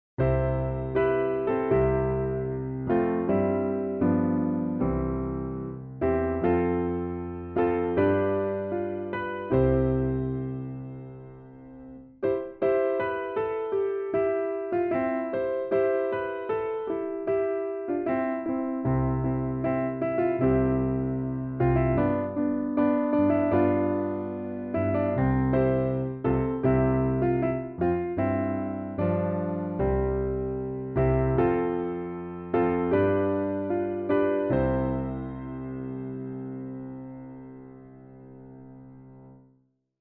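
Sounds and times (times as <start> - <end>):
piano playing: 0.2 - 39.4.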